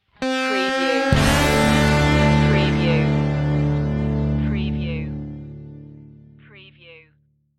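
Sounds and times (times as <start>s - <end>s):
Texas rock music stinger: 0.2s - 6.4s.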